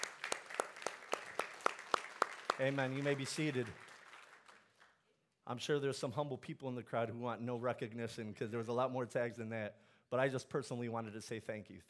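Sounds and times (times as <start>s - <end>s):
audience applauding: 0.0s - 4.9s
sharp hand claps: 0.0s - 4.9s
speech: 2.6s - 3.9s, 5.5s - 11.8s.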